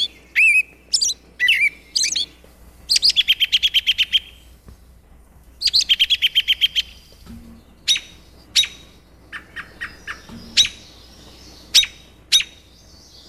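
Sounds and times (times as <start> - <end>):
American robin calling: 0.0 - 4.6, 5.5 - 13.2.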